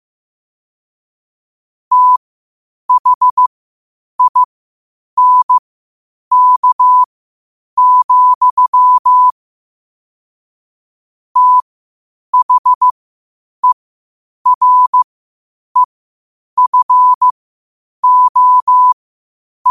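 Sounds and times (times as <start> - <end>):
morse code at 5 wpm: 1.9 - 2.2, 2.9 - 3.5, 4.2 - 4.5, 5.2 - 5.6, 6.3 - 7.1, 7.8 - 9.3, 11.4 - 11.6, 12.4 - 12.9, 14.5 - 15.1, 16.6 - 17.3, 18.0 - 19.0.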